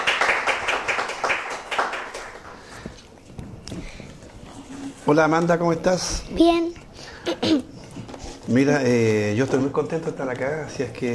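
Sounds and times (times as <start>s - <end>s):
applause: 0.0s - 2.8s
speech: 5.1s - 6.8s, 8.5s - 11.1s.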